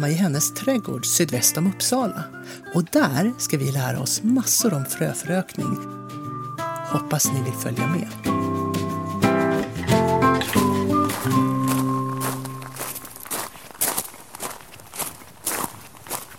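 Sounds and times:
speech: 0:00.0 - 0:06.1, 0:06.9 - 0:08.5
footsteps stepping into a home plant nursery room: 0:09.6 - 0:16.3
short melodic chime: 0:09.8 - 0:13.2.

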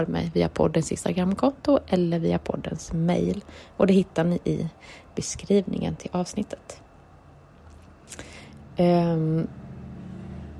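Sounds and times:
speech: 0:00.0 - 0:06.8, 0:08.1 - 0:09.6
many motorcycles driving past: 0:09.2 - 0:10.5.

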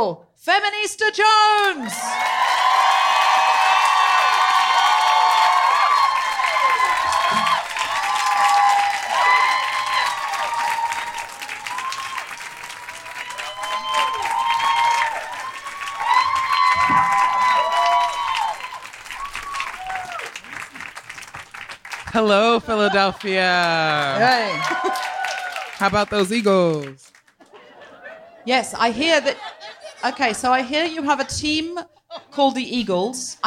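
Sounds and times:
speech: 0:00.0 - 0:02.5, 0:22.2 - 0:25.1, 0:25.8 - 0:27.1, 0:28.4 - 0:33.4
live audience clapping in Philadelphia: 0:01.6 - 0:27.8
live audience cheering and whooping in Philadelphia: 0:01.8 - 0:21.6, 0:22.4 - 0:26.0
audience whistles: 0:13.3 - 0:17.6, 0:19.1 - 0:19.8
laughter: 0:22.4 - 0:25.2, 0:27.4 - 0:32.4.

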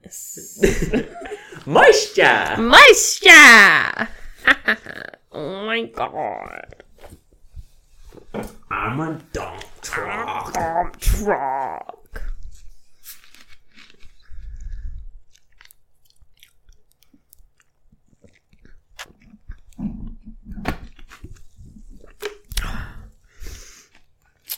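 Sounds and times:
speech: 0:00.1 - 0:04.1, 0:05.9 - 0:06.7, 0:08.8 - 0:11.5
person burping into the microphone: 0:08.6 - 0:09.1, 0:09.8 - 0:12.2.

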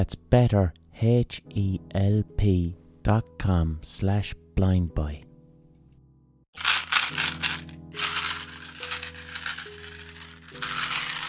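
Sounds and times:
speech: 0:00.0 - 0:05.3
packet of chewing gum being shaken: 0:06.6 - 0:11.2.

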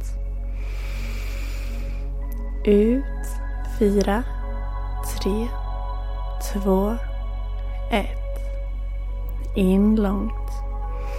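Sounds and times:
low constant hum: 0:00.0 - 0:11.1
long slow inhale: 0:00.5 - 0:02.3, 0:10.9 - 0:11.1
speech: 0:02.6 - 0:03.1, 0:03.8 - 0:04.3, 0:05.2 - 0:05.6, 0:06.4 - 0:07.1, 0:07.9 - 0:08.2, 0:09.5 - 0:10.4.

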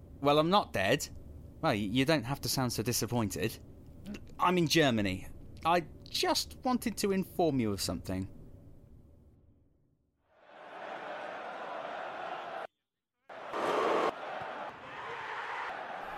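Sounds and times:
speech: 0:00.2 - 0:08.4
simulated crowd noise: 0:10.5 - 0:12.7, 0:13.3 - 0:16.1.

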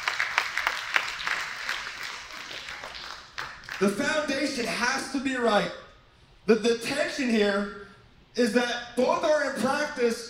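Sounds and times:
audience clapping: 0:00.0 - 0:04.2
speech: 0:03.8 - 0:05.9, 0:06.5 - 0:07.8, 0:08.4 - 0:10.2.

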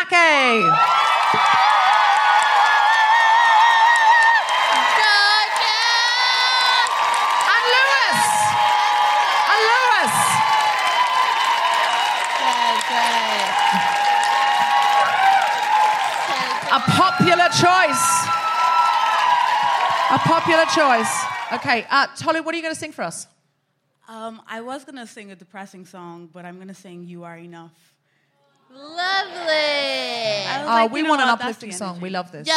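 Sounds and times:
speech: 0:00.1 - 0:01.0, 0:20.1 - 0:23.3, 0:24.3 - 0:28.0, 0:28.7 - 0:32.5
high swooping whoops and cheers: 0:00.4 - 0:21.8
live audience applauding a performer: 0:00.6 - 0:21.9.

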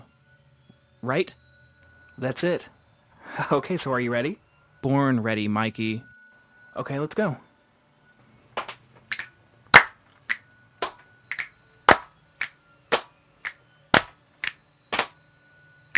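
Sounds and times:
speech: 0:01.0 - 0:01.4, 0:02.2 - 0:06.1, 0:06.8 - 0:07.5
hand clap: 0:08.6 - 0:15.2.

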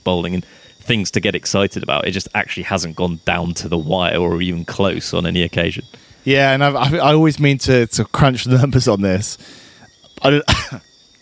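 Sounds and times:
speech: 0:00.0 - 0:10.9
person coughing: 0:10.4 - 0:10.8.

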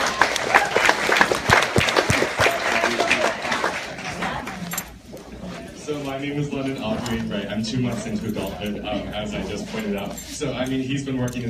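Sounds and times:
audience applause after a talk: 0:00.0 - 0:04.7
speech: 0:06.2 - 0:11.4.

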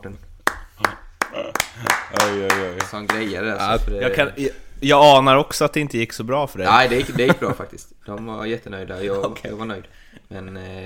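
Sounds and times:
speech: 0:00.0 - 0:10.8
hand claps: 0:00.4 - 0:03.4
laughter: 0:06.7 - 0:07.7.

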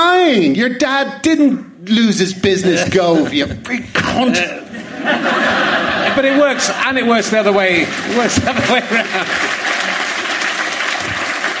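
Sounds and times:
speech: 0:00.3 - 0:09.5
laughter: 0:02.5 - 0:11.5
crowd applause: 0:04.8 - 0:11.5.

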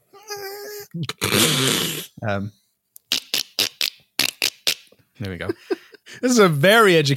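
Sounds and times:
person's voice imitating a dolphin: 0:00.1 - 0:02.2, 0:03.1 - 0:04.9
speech: 0:00.9 - 0:02.6, 0:05.2 - 0:07.1.

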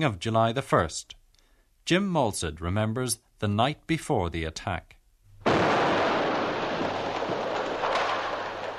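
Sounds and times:
speech: 0:00.0 - 0:01.2, 0:01.8 - 0:05.6
artillery shells bursting: 0:05.4 - 0:08.7.

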